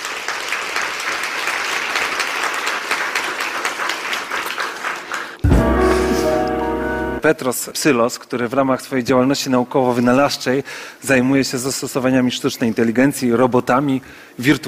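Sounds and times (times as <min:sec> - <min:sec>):
audience applause: 0:00.0 - 0:06.9
speech: 0:07.2 - 0:14.6.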